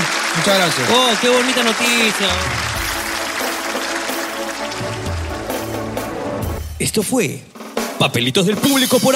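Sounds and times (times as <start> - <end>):
audience applause: 0.0 - 6.6
speech: 0.4 - 2.6, 6.8 - 9.1.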